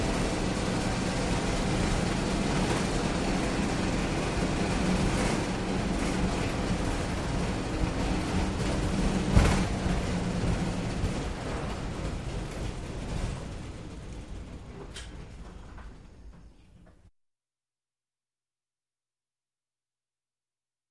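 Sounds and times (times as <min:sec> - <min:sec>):
school bus engine starting: 0:00.0 - 0:16.7.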